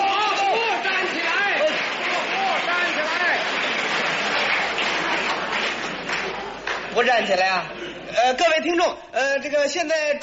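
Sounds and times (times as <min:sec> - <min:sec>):
crowd cheering and applauding at a table tennis match: 0:00.0 - 0:07.0
speech: 0:07.0 - 0:10.2.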